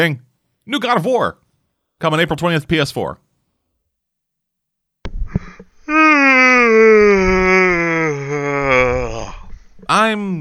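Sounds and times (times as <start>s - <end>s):
speech: 0.0s - 1.4s, 2.0s - 3.2s, 9.9s - 10.3s
yawn: 5.8s - 9.6s.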